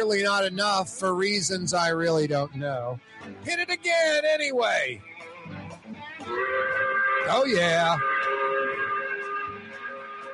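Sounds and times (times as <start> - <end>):
speech: 0.0 - 5.6, 6.2 - 8.2
five o'clock factory whistle blowing: 6.3 - 10.3.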